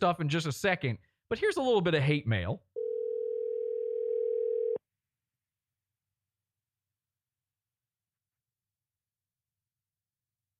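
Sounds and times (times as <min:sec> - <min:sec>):
speech: 0:00.0 - 0:02.7
telephone dialing tone: 0:02.8 - 0:04.8.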